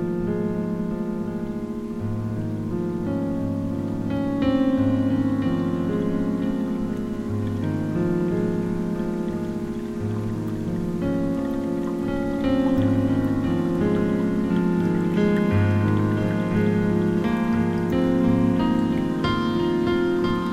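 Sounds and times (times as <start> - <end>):
pentatonic melody: 0.0 - 20.5.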